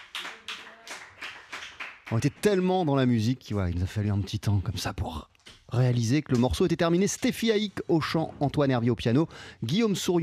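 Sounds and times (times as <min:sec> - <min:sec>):
audience applause after a song: 0:00.0 - 0:02.6
speech: 0:02.1 - 0:10.2.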